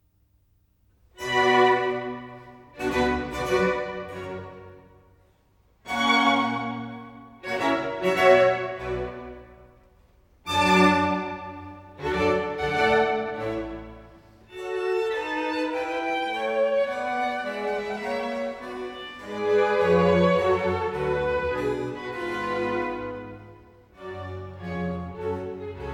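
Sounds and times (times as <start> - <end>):
baroque concerto grosso largo movement: 1.1 - 25.9.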